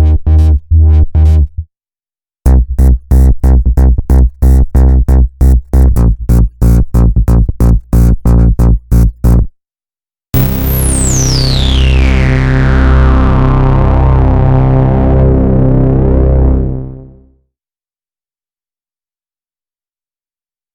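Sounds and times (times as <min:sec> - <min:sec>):
massive bass techno music: 0:00.0 - 0:01.7, 0:02.5 - 0:09.5, 0:10.4 - 0:17.2.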